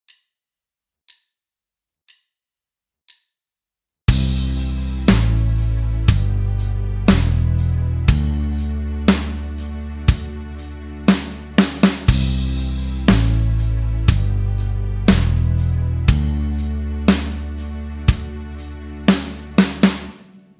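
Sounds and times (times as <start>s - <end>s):
backing music: 4.1s - 20.5s.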